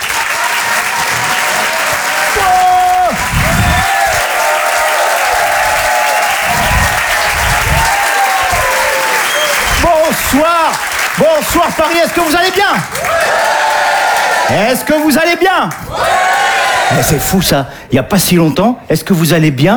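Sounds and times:
audience shouting: 0:00.0 - 0:15.0, 0:15.8 - 0:17.4
comedy club audience applause in Paris: 0:00.0 - 0:15.1
whistles: 0:00.8 - 0:04.3, 0:05.2 - 0:10.4
speech: 0:10.3 - 0:13.2, 0:14.5 - 0:16.1, 0:16.9 - 0:19.7.

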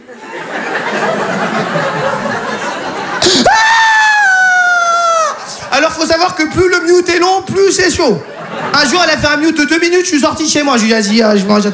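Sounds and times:
audience laughing: 0:00.0 - 0:10.8
voice imitating a baby's crying fit: 0:03.2 - 0:05.4
speech: 0:06.2 - 0:11.7.

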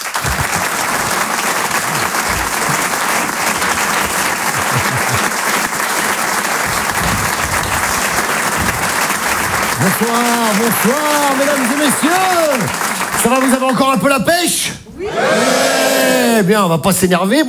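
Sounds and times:
laughter: 0:00.0 - 0:13.8, 0:14.9 - 0:16.4
comedy club audience ovation clapping: 0:00.0 - 0:16.5
speech: 0:09.8 - 0:17.4.

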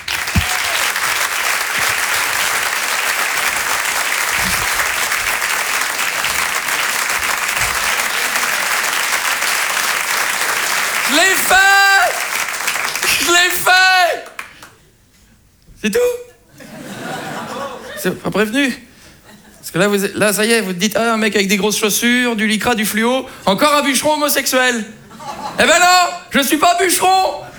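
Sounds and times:
audience applause: 0:00.0 - 0:13.6
high whoops and cheers: 0:00.2 - 0:01.0
laughter: 0:01.7 - 0:09.3, 0:16.5 - 0:18.3, 0:25.0 - 0:25.9
speech: 0:18.0 - 0:18.8, 0:19.7 - 0:27.5.

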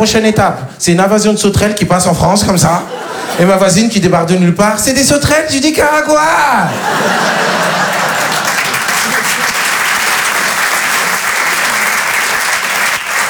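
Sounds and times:
speech: 0:00.0 - 0:07.9
audience laughter: 0:02.8 - 0:03.7, 0:06.7 - 0:12.5
audience applause: 0:06.8 - 0:13.2.

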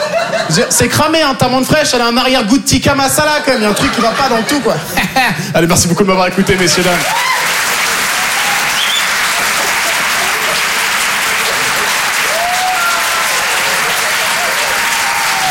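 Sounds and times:
laughter: 0:00.0 - 0:01.0, 0:03.3 - 0:15.4
speech: 0:00.5 - 0:07.4
audience applause at a comedy club: 0:06.4 - 0:15.4.

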